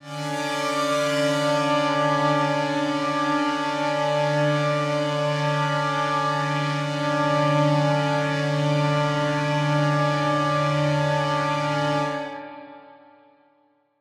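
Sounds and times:
dystopian drone in D: 0:00.0 - 0:12.8.

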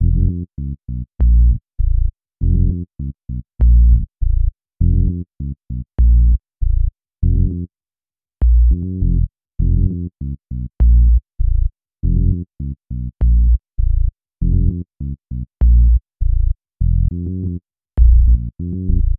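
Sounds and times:
hip-hop bass: 0:00.0 - 0:00.4, 0:01.2 - 0:02.9, 0:03.6 - 0:05.2, 0:06.0 - 0:07.7, 0:08.4 - 0:10.1, 0:10.8 - 0:12.5, 0:13.2 - 0:19.1.

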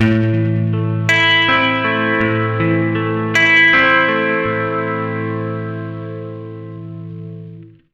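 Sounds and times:
acoustic guitar arpeggio loop in A at 80 BPM: 0:00.0 - 0:07.7.

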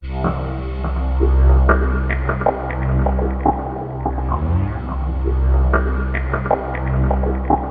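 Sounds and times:
synth line: 0:00.0 - 0:07.6.

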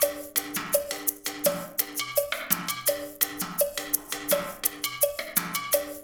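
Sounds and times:
percussion loop: 0:00.0 - 0:06.0.

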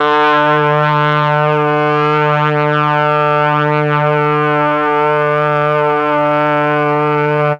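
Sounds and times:
brass: 0:00.0 - 0:07.5.

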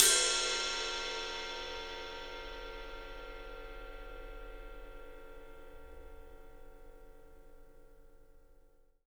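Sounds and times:
studio ride cymbal: 0:00.0 - 0:06.1.

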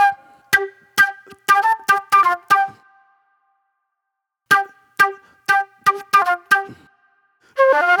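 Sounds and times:
fast funk flute: 0:00.0 - 0:02.8, 0:04.5 - 0:06.8, 0:07.6 - 0:07.9.

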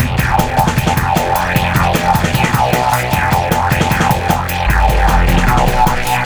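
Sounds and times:
hardcore breakbeat in F minor: 0:00.0 - 0:06.2.

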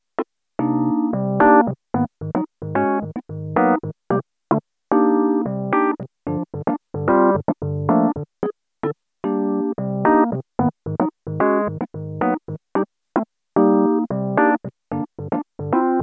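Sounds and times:
electro lounge music: 0:00.6 - 0:04.0, 0:05.0 - 0:08.3, 0:09.3 - 0:12.6, 0:13.6 - 0:16.0.

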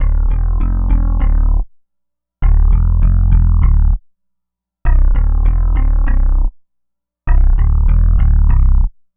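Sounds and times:
synth bass: 0:00.0 - 0:01.6, 0:02.4 - 0:04.0, 0:04.9 - 0:06.5, 0:07.3 - 0:08.9.

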